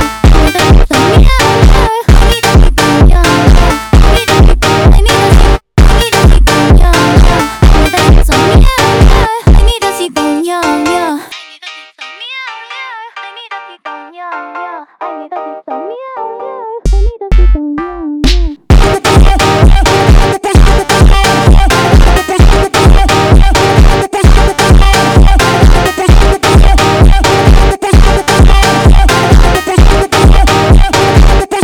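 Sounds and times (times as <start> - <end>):
funk music: 0.0 - 10.0, 16.9 - 31.6.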